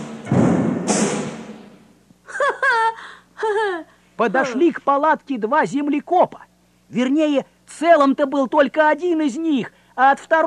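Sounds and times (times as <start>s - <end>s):
heavy frightening footsteps: 0.2s - 1.9s
laughter: 2.3s - 4.7s
speech: 4.2s - 10.4s.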